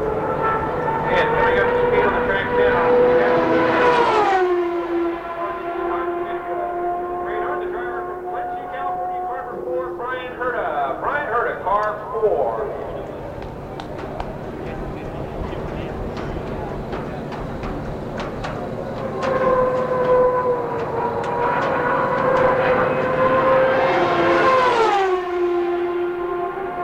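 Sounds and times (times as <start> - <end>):
IndyCar 2.65-liter turbocharged V8 engine whine passing at Phoenix International Raceway: 0.0 - 26.8.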